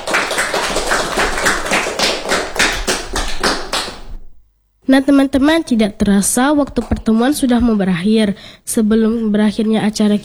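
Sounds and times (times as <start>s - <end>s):
group applause: 0.0s - 4.3s
speech: 4.9s - 10.2s.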